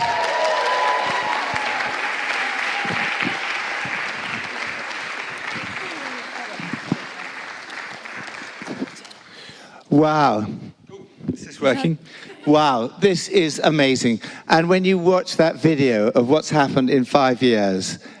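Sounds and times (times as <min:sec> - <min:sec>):
audience applause welcoming two guests onto the stage at a church event: 0:00.0 - 0:09.5
speech: 0:10.0 - 0:10.6, 0:11.6 - 0:18.1.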